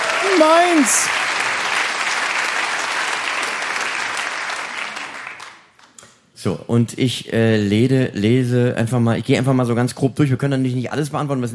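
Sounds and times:
audience clapping: 0.0 - 6.0
speech: 0.3 - 1.3, 6.4 - 11.5.

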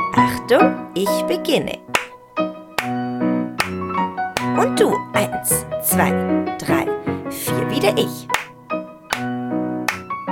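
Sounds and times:
speech: 0.2 - 2.5, 4.6 - 8.4
rhythmic hand clapping: 1.9 - 5.6, 8.2 - 10.2.

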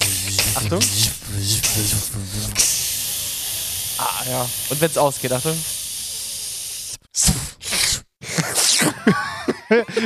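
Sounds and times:
lightsaber humming while pressed against another blade: 0.0 - 6.0
harsh crackling hiss of lightsaber blades pressed together: 0.0 - 7.8
speech: 0.6 - 2.6, 4.2 - 5.8, 9.7 - 10.0
laughter: 8.9 - 10.0.

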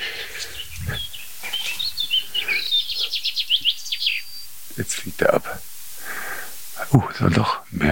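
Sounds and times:
pipit singing finch-like song: 0.0 - 5.1
speech: 4.8 - 5.7, 6.9 - 7.8.

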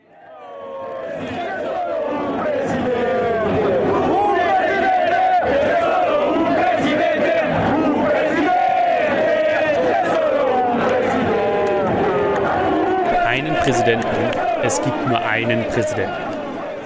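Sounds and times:
hundreds of AC Milan football fans chanting in Milan: 1.0 - 16.8
speech: 13.8 - 16.4.

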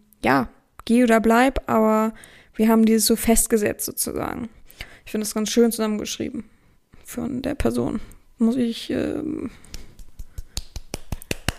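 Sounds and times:
speech: 0.2 - 6.5, 7.1 - 9.7
hand clapping: 9.6 - 11.5.

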